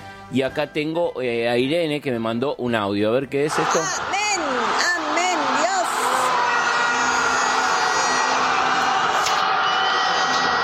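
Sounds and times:
speech: 0:00.3 - 0:05.0
large crowd cheering a goal: 0:03.5 - 0:10.6.

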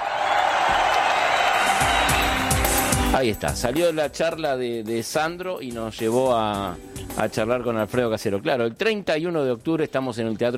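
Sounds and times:
audience applause and cheering: 0:00.0 - 0:03.4
speech: 0:03.2 - 0:10.5.

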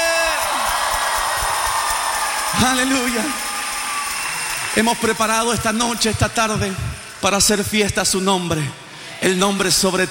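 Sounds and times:
audience shouting and cheering with joy: 0:00.0 - 0:07.6
speech: 0:02.5 - 0:03.5, 0:04.7 - 0:10.0.

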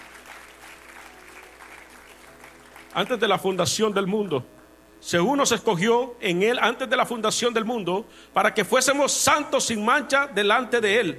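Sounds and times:
church congregation applauding during a service: 0:00.0 - 0:03.8
speech: 0:02.9 - 0:11.1.

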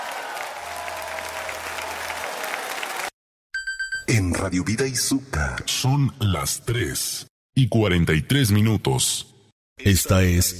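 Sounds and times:
crowd applauding: 0:00.0 - 0:03.2
speech: 0:04.1 - 0:10.5.

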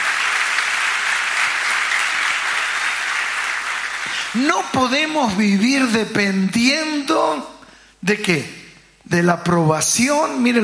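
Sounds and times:
loud applause: 0:00.0 - 0:04.8
speech: 0:04.4 - 0:10.6.

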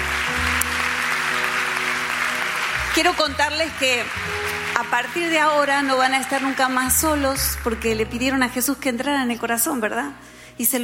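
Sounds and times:
church congregation welcome applause after a closing prayer: 0:00.0 - 0:08.0
speech: 0:03.0 - 0:10.8.

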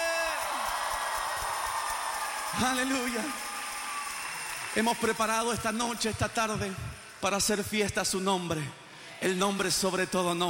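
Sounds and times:
crowd shouting for joy: 0:00.0 - 0:05.6
speech: 0:02.5 - 0:03.5, 0:04.7 - 0:10.4.

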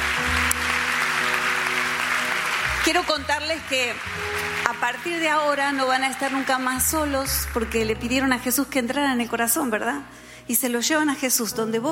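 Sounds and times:
church congregation welcoming applause: 0:00.0 - 0:08.3
speech: 0:02.8 - 0:11.9.

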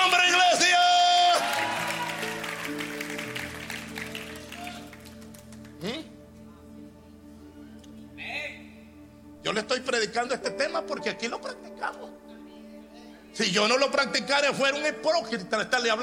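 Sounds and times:
church audience applauding loudly: 0:01.0 - 0:05.8
speech: 0:09.7 - 0:12.3, 0:13.4 - 0:16.0.

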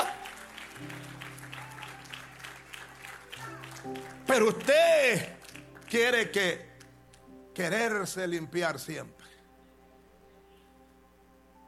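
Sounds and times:
audience applause: 0:00.0 - 0:06.2
speech: 0:03.8 - 0:06.7, 0:07.6 - 0:09.2.

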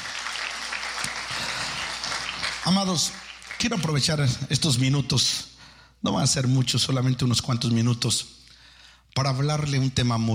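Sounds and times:
congregation applauding during a church worship service: 0:00.0 - 0:04.4
speech: 0:02.6 - 0:08.4, 0:09.2 - 0:10.3.

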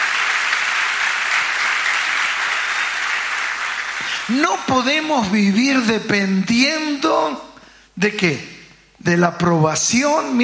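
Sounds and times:
audience applause: 0:00.0 - 0:04.3
speech: 0:04.3 - 0:10.4.

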